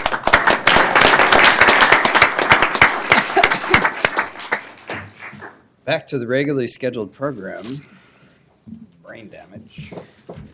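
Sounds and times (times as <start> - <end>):
audience clapping: 0.0 - 5.6
speech: 5.9 - 8.0, 9.2 - 10.1.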